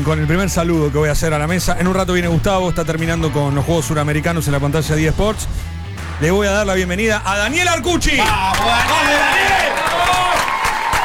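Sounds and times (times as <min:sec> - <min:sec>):
speech: 0:00.0 - 0:10.2
studio audience applauding: 0:08.2 - 0:11.0.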